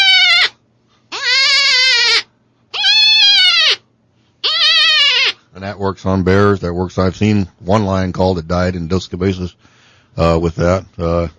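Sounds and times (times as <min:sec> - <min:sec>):
fawn distress call, loud high nasal bleats: 0:00.0 - 0:03.8, 0:04.4 - 0:05.4
speech: 0:05.6 - 0:11.3.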